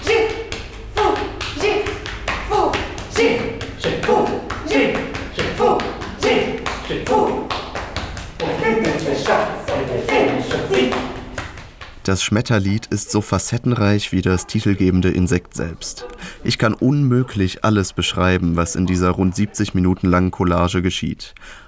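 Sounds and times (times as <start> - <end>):
performers patting each other's backs: 0.0 - 12.1
people speaking rhythmic syllables in an invented language: 0.0 - 20.7
speech: 12.1 - 21.6.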